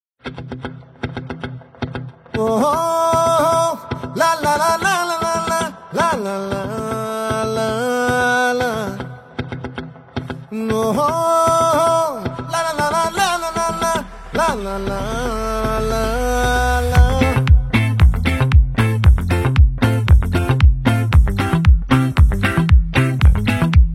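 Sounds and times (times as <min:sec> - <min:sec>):
instrumental song intro: 0:00.3 - 0:23.9.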